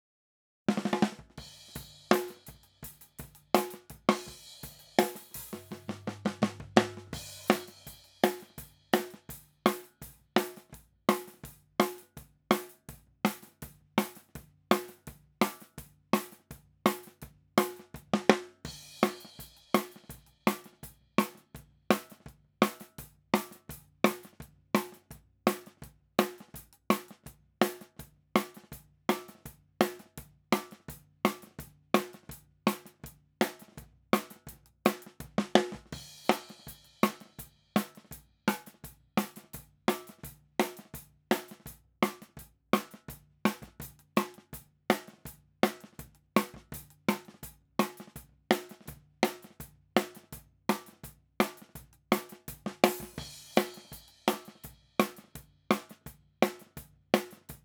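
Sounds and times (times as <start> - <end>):
snare drum: 0.7 - 57.6.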